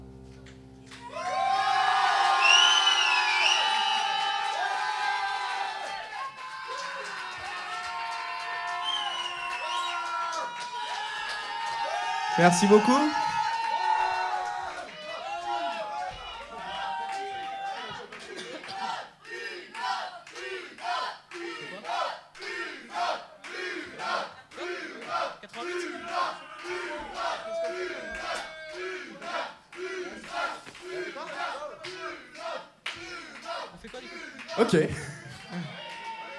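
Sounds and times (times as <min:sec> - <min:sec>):
studio audience shouting and cheering: 0:01.0 - 0:18.8, 0:34.6 - 0:36.3
clapping: 0:02.2 - 0:22.5, 0:23.4 - 0:36.3
speech: 0:12.4 - 0:13.2.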